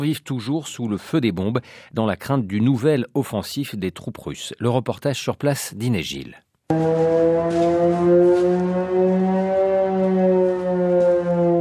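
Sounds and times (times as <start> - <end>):
speech: 0.0 - 9.2
air raid warning sirens in Liptsi: 6.7 - 11.5.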